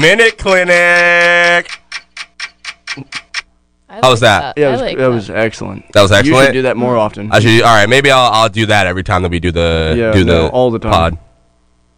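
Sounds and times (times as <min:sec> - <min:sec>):
speech: 0:00.0 - 0:01.8, 0:03.9 - 0:11.2
timer ticking: 0:00.0 - 0:03.5.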